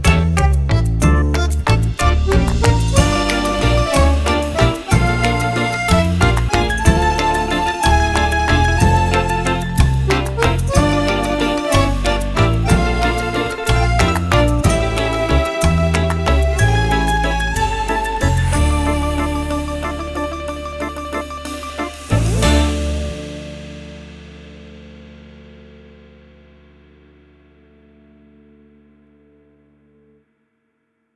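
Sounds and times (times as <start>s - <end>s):
comic waltz music: 0.0s - 23.8s.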